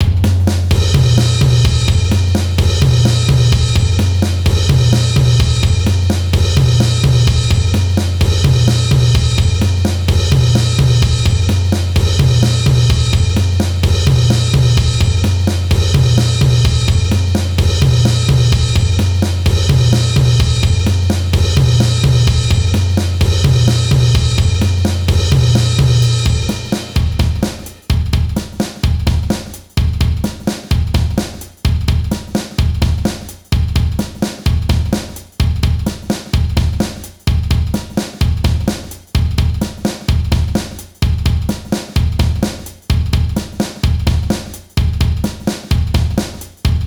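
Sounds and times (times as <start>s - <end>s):
drums: 0.0s - 46.8s.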